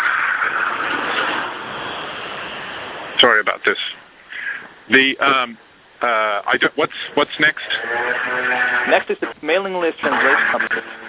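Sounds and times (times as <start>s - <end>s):
truck passing: 0.0s - 3.2s
speech: 3.2s - 4.0s, 4.9s - 11.0s.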